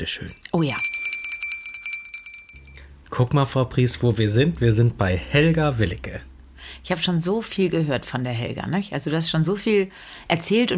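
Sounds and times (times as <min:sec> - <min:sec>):
speech: 0:00.0 - 0:01.0, 0:03.2 - 0:10.7
jingle of a doorbell ringing: 0:00.0 - 0:02.8.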